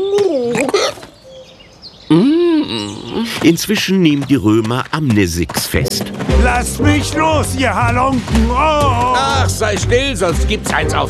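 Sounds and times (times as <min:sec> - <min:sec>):
voice imitating a hiccuping dove: 0:00.0 - 0:01.2, 0:02.1 - 0:03.5
speech: 0:02.1 - 0:11.0.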